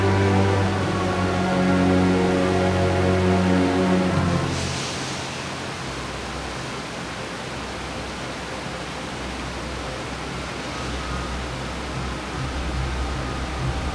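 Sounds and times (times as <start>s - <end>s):
music: 0.0s - 5.6s, 9.4s - 13.9s.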